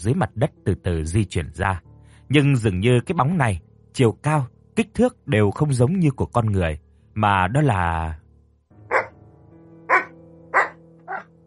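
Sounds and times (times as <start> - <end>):
speech: 0.0 - 8.2
dog barking: 8.9 - 9.2, 9.9 - 11.3.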